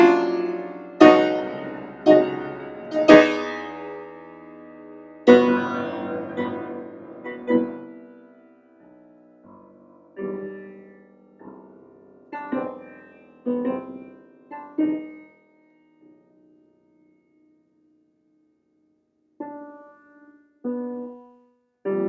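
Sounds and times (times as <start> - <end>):
improvised piano funeral march in B flat and C minor: 0.0 - 15.3.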